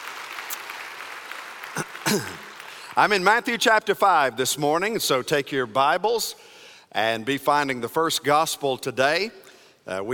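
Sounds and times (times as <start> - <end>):
church congregation applauding at a morning service: 0.0 - 3.4
speech: 2.1 - 2.4, 3.0 - 10.1.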